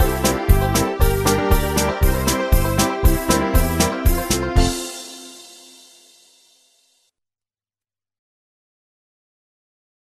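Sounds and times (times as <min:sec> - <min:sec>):
karaoke singing: 0:00.0 - 0:05.4.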